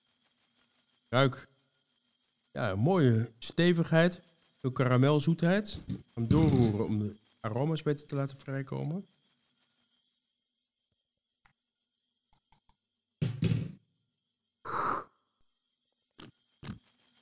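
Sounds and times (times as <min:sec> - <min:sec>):
speech: 0:01.1 - 0:01.5, 0:02.6 - 0:09.2
person slurping a drink while tasting: 0:05.8 - 0:06.9, 0:14.7 - 0:15.1, 0:16.2 - 0:16.8.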